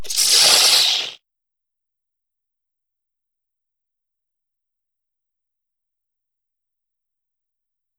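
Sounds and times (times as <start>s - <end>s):
monster death sound: 0.0s - 1.2s.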